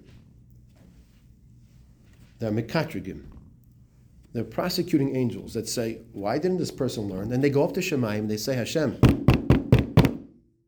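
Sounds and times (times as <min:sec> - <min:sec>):
speech: 0:02.4 - 0:03.4, 0:04.4 - 0:09.2
knock on a door: 0:09.0 - 0:10.3.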